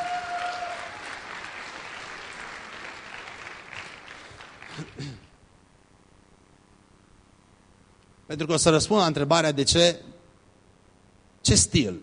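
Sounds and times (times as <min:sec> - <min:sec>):
audience applause: 0:00.0 - 0:05.3
speech: 0:04.8 - 0:05.2, 0:08.3 - 0:10.1, 0:11.4 - 0:12.0.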